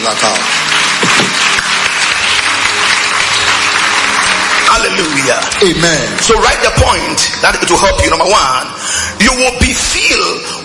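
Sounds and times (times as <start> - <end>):
audience applause: 0.0 - 8.4
speech: 5.6 - 10.5.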